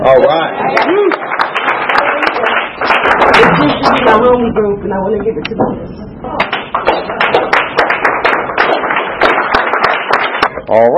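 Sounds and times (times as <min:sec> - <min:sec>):
speech: 0:00.0 - 0:01.3, 0:03.6 - 0:07.1, 0:10.7 - 0:10.9
applause: 0:00.6 - 0:04.1, 0:06.4 - 0:10.9.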